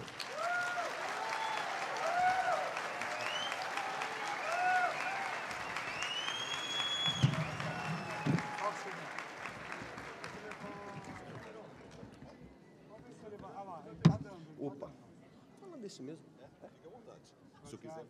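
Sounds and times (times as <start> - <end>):
audience applause: 0.0 - 12.0.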